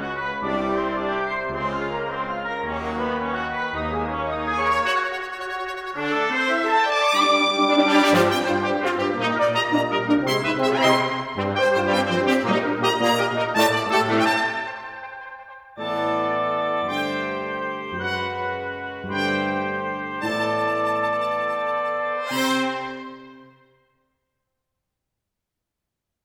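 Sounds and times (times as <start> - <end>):
brass fanfare: 0.0 - 23.8.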